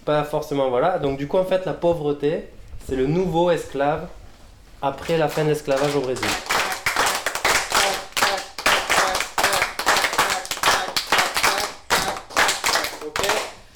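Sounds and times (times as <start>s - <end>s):
speech: 0.0s - 4.2s, 4.8s - 6.4s
Brazilian-style hand clapping for capoeira: 4.9s - 13.7s.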